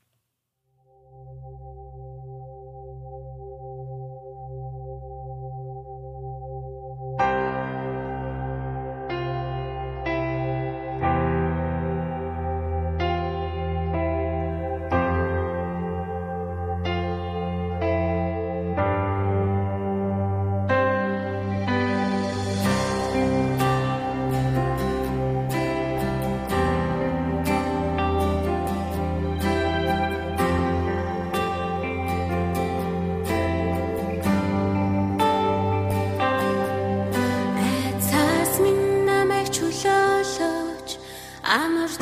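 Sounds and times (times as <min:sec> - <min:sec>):
CCM song: 0:07.2 - 0:41.9.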